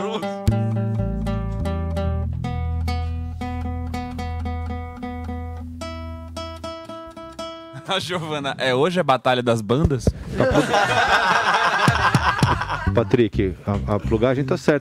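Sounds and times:
plucked notes: 0:00.0 - 0:07.9, 0:11.8 - 0:14.6
speech: 0:00.1 - 0:00.4, 0:07.9 - 0:11.3, 0:12.9 - 0:14.8
laughter: 0:10.3 - 0:14.5.

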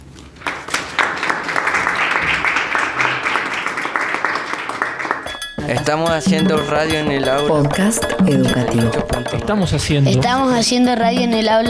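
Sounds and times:
applause: 0:00.3 - 0:05.6, 0:07.3 - 0:09.2
speech: 0:05.7 - 0:11.6.

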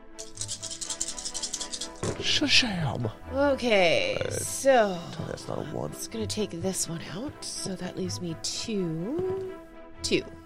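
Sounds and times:
dice rattling as they are rolled: 0:00.2 - 0:02.5
speech: 0:02.2 - 0:10.4.

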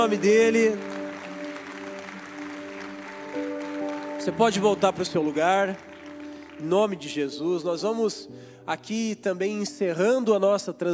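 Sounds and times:
speech: 0:00.0 - 0:00.9, 0:04.2 - 0:05.9, 0:06.6 - 0:10.9
audience applauding: 0:00.0 - 0:07.5.

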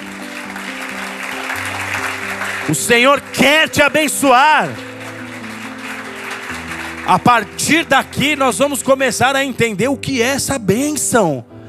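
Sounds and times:
audience applauding: 0:00.0 - 0:09.6
speech: 0:02.7 - 0:04.9, 0:07.1 - 0:11.5.

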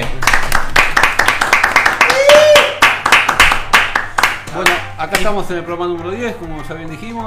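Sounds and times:
studio audience clapping: 0:00.0 - 0:05.4
speech: 0:05.1 - 0:07.2.

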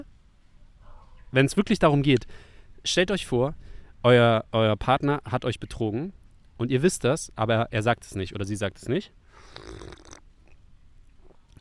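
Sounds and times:
speech: 0:01.3 - 0:10.1
slurping tea: 0:09.4 - 0:10.2.

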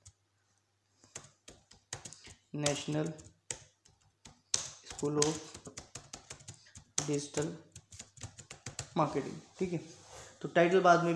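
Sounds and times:
typing on a computer keyboard: 0:01.0 - 0:09.0
speech: 0:02.5 - 0:03.3, 0:05.0 - 0:05.6, 0:07.1 - 0:07.7, 0:09.0 - 0:11.1.

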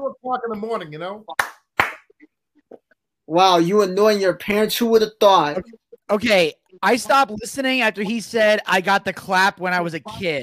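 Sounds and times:
speech: 0:00.3 - 0:01.4, 0:03.3 - 0:10.4
hands clapping to trigger a clapper: 0:01.4 - 0:02.1.

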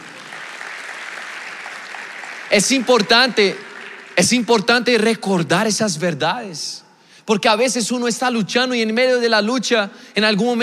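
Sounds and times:
audience applause: 0:00.0 - 0:05.0
speech: 0:02.5 - 0:10.6.

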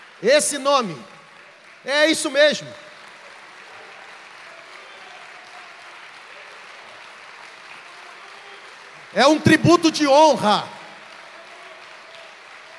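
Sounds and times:
audience applause: 0:00.0 - 0:12.7
speech: 0:00.2 - 0:01.2, 0:01.8 - 0:02.8, 0:09.2 - 0:10.8.

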